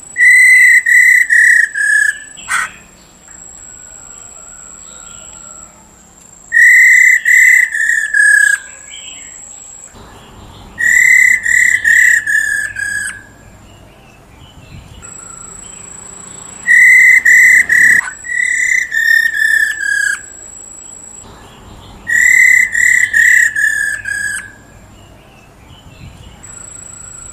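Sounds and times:
Black-throated laughingthrush whistling: 0:00.1 - 0:09.4, 0:10.2 - 0:27.3.

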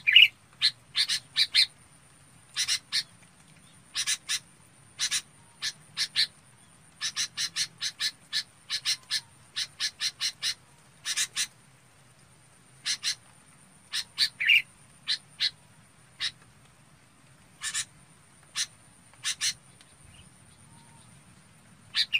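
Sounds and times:
red-whiskered bulbul calling: 0:00.0 - 0:01.7, 0:02.5 - 0:03.1, 0:03.9 - 0:04.4, 0:05.0 - 0:06.3, 0:07.0 - 0:11.5, 0:12.8 - 0:13.2, 0:13.9 - 0:15.6, 0:17.6 - 0:17.9, 0:18.5 - 0:21.0, 0:21.9 - 0:22.1.

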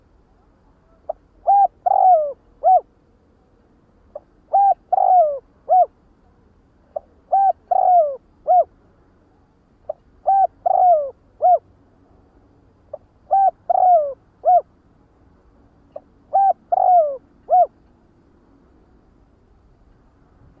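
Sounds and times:
spotted dove cooing: 0:00.9 - 0:02.9, 0:04.1 - 0:06.0, 0:07.0 - 0:08.7, 0:09.9 - 0:11.7, 0:12.9 - 0:14.7, 0:16.0 - 0:17.8.

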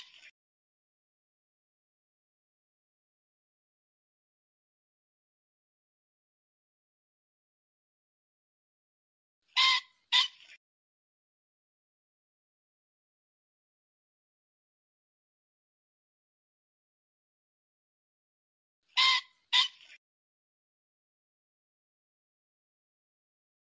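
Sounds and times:
pheasant squawking: 0:09.5 - 0:10.6, 0:19.0 - 0:20.0.

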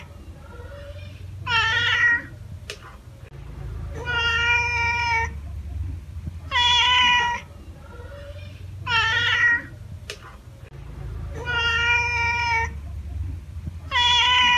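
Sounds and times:
domestic cat giving drawn-out meows: 0:00.0 - 0:02.4, 0:03.9 - 0:05.4, 0:06.5 - 0:09.8, 0:11.3 - 0:12.8, 0:13.9 - 0:14.5.

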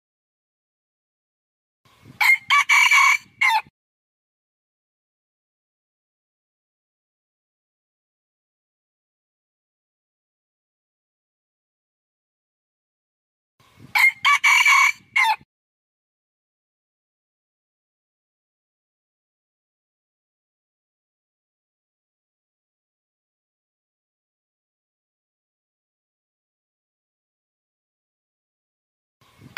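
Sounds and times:
red junglefowl crowing: 0:02.2 - 0:03.7, 0:13.9 - 0:15.4.

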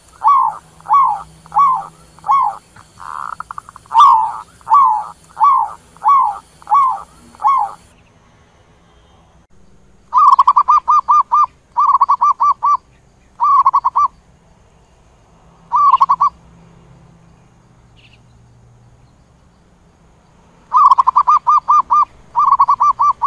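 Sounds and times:
zebra dove cooing: 0:00.0 - 0:07.9, 0:10.1 - 0:12.8, 0:13.4 - 0:14.1, 0:15.7 - 0:16.4, 0:20.7 - 0:23.2.

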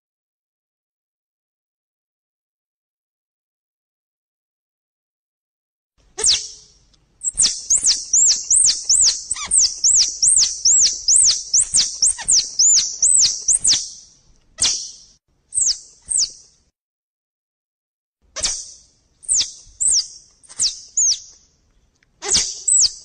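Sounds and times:
squirrel chattering: 0:06.2 - 0:06.6, 0:07.2 - 0:13.8, 0:18.4 - 0:21.2, 0:22.2 - 0:23.0.

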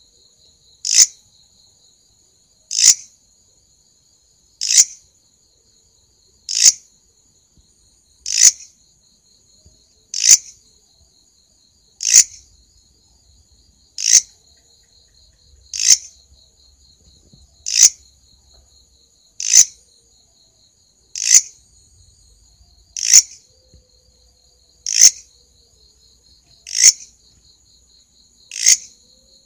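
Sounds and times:
steady high-pitched insect whine: 0:00.0 - 0:29.4
grasshopper stridulation: 0:04.6 - 0:05.0, 0:06.5 - 0:06.8, 0:08.2 - 0:08.7, 0:10.1 - 0:10.5, 0:12.0 - 0:12.4, 0:14.0 - 0:14.4, 0:15.7 - 0:16.1, 0:17.6 - 0:18.1, 0:19.4 - 0:19.8, 0:21.1 - 0:21.6, 0:23.0 - 0:23.4, 0:24.8 - 0:25.3, 0:26.6 - 0:27.2, 0:28.5 - 0:29.0.

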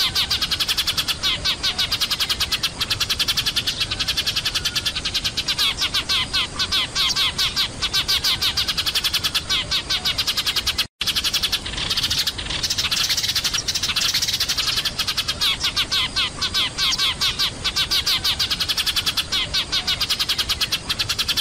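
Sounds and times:
sparrows chirping: 0:00.0 - 0:21.3.

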